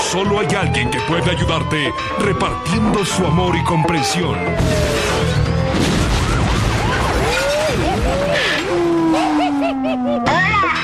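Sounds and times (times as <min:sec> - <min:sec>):
speech: 0:00.1 - 0:05.2
nuclear explosion sound effect: 0:04.5 - 0:09.2
laughter: 0:07.5 - 0:10.7.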